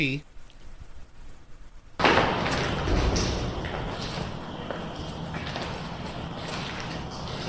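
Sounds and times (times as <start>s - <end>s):
door slamming: 2.0s - 5.4s
footsteps: 2.0s - 7.4s.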